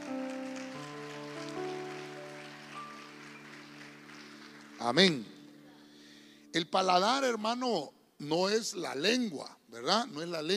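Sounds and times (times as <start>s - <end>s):
church congregation applauding loudly: 0.0s - 6.0s
speech: 4.8s - 5.3s, 6.6s - 10.5s.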